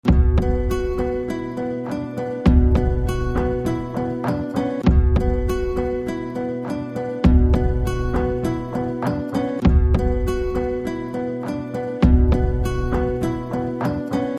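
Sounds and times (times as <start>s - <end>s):
Tamil background music ringtone: 0.0s - 14.3s.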